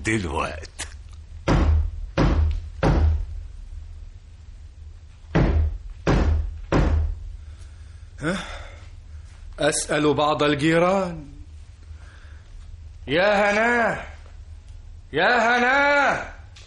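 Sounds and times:
speech: 0:00.0 - 0:00.7, 0:08.2 - 0:08.6, 0:09.6 - 0:11.4, 0:13.0 - 0:14.1, 0:15.1 - 0:16.4
knocking on a door: 0:01.4 - 0:03.3, 0:05.3 - 0:07.2.

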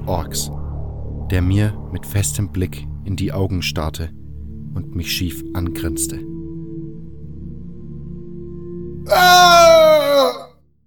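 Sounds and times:
low steady drone: 0:00.0 - 0:09.0
speech: 0:00.1 - 0:00.6, 0:01.3 - 0:06.3
harsh scream: 0:09.1 - 0:10.5.

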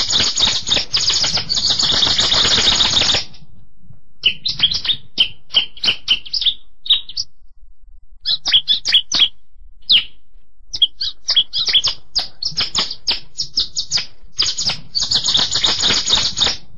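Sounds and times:
Bar-winged Prinia chirping: 0:00.0 - 0:03.5, 0:04.2 - 0:07.5, 0:08.2 - 0:16.6.

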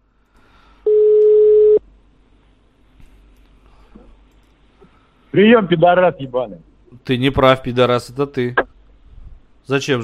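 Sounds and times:
telephone tone on a call being redialed: 0:00.9 - 0:01.8
speech: 0:05.3 - 0:08.6, 0:09.6 - 0:10.0.

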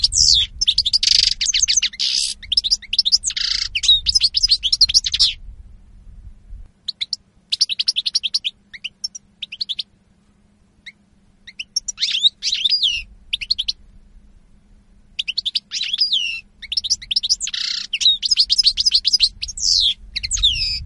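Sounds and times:
European goldfinch song: 0:00.0 - 0:05.5, 0:06.8 - 0:13.9, 0:15.1 - 0:20.8
low rumble: 0:00.0 - 0:06.8, 0:19.2 - 0:20.8.

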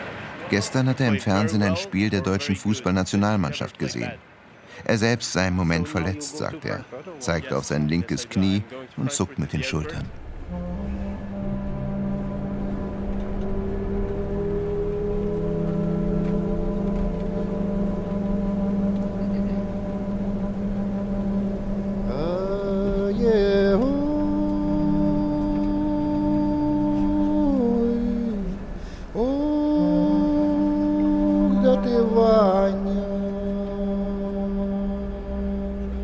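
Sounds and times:
bus driving on the motorway between Dortmund and Unna: 0:00.0 - 0:03.0, 0:10.1 - 0:36.0
speech: 0:00.5 - 0:11.0.

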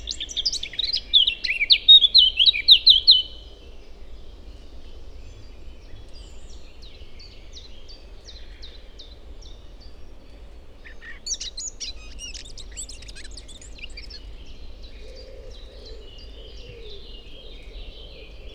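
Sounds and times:
Eurasian blackcap song in Forêt de Chautagne France: 0:00.0 - 0:03.3, 0:10.8 - 0:15.1.

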